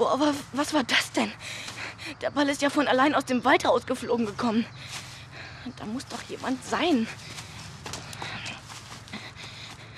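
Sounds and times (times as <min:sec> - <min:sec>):
speech: 0:00.0 - 0:07.4
faint footsteps of someone running away near a forest: 0:04.8 - 0:09.9.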